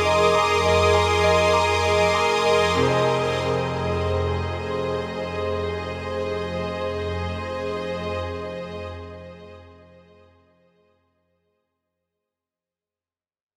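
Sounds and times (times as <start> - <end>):
film piano music: 0.0 - 9.2.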